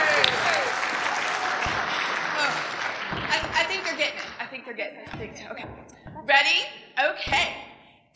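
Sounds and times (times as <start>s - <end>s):
audience applause: 0.0s - 4.5s
speech: 4.8s - 7.6s.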